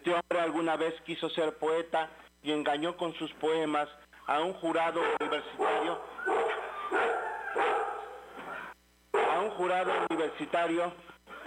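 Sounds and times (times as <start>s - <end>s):
speech: 0.1s - 6.1s, 9.6s - 11.1s
dogs barking: 4.9s - 10.2s
dogs yelping and whining: 5.0s - 8.8s.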